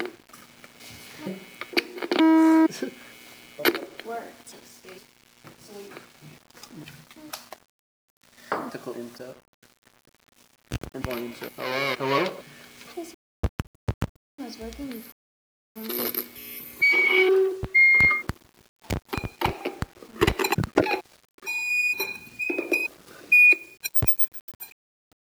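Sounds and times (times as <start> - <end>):
amplifier: 1.4 - 2.7, 10.3 - 12.8, 16.5 - 24.2.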